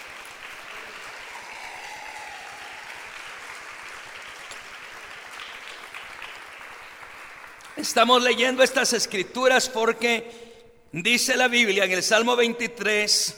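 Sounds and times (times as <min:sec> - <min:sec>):
audience applause: 0:00.0 - 0:08.5
speech: 0:07.8 - 0:13.3.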